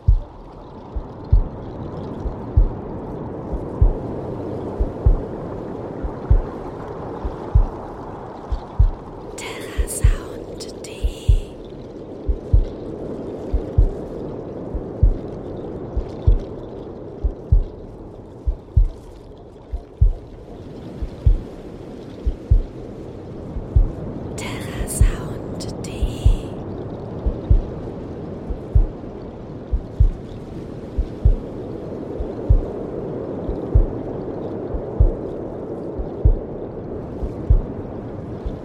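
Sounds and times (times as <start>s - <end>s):
heartbeat: 0.0s - 2.9s, 3.5s - 4.2s, 4.8s - 10.4s, 11.0s - 16.6s, 17.2s - 17.8s, 18.4s - 20.3s, 21.0s - 21.6s, 22.2s - 22.8s, 23.5s - 24.1s, 24.7s - 26.6s, 27.2s - 29.1s, 29.7s - 30.3s, 30.9s - 34.1s, 34.7s - 36.5s, 37.2s - 37.8s, 38.4s - 38.6s
waves: 0.0s - 38.6s.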